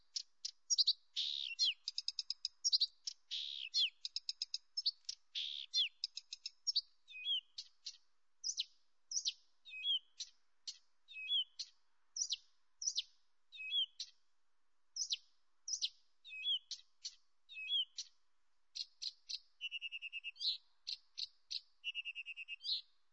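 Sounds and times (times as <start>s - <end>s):
Acrocephalus dumetorum singing: 0.0s - 7.8s, 8.4s - 10.4s, 11.1s - 14.2s, 15.0s - 18.1s, 18.8s - 22.9s.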